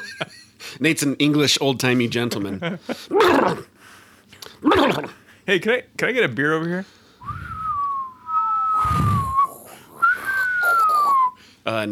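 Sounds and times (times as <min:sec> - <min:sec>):
speech: 0:00.2 - 0:03.7, 0:04.6 - 0:07.4, 0:11.7 - 0:11.8
person whistling imitating a birdcall: 0:07.2 - 0:11.4.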